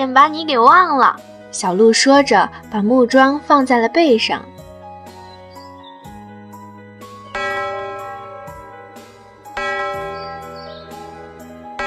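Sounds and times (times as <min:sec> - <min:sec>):
speech: 0:00.0 - 0:04.5
bell ringing in a forest: 0:07.4 - 0:11.8.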